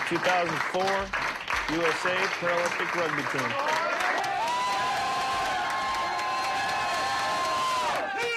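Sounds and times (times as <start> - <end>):
speech: 0.1 - 3.8
children cheering in a gym: 3.8 - 8.2.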